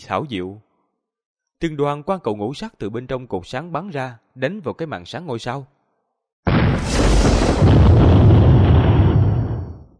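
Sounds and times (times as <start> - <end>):
speech: 0.1 - 0.7, 1.6 - 5.8
successive loud explosions: 6.5 - 9.9.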